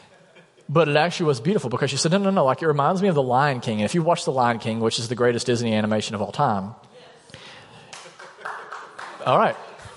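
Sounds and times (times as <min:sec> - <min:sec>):
speech: 0:00.7 - 0:06.9, 0:09.2 - 0:09.7
audience applause: 0:07.9 - 0:09.9.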